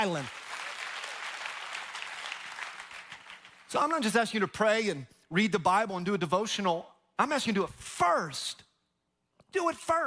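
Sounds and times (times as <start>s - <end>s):
speech: 0.0s - 0.4s, 3.7s - 8.7s, 9.5s - 10.0s
church audience clapping: 0.0s - 4.2s.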